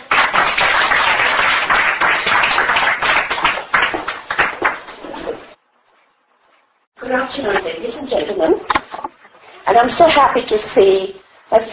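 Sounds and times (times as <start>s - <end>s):
applause welcoming the next speaker at a holistic health talk: 0.0s - 5.2s
speech: 7.3s - 8.8s, 9.8s - 11.7s.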